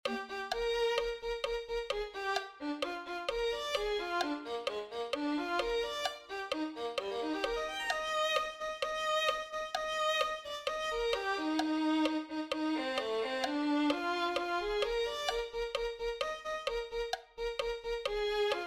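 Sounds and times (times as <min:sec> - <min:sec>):
violin: 0:00.0 - 0:18.6.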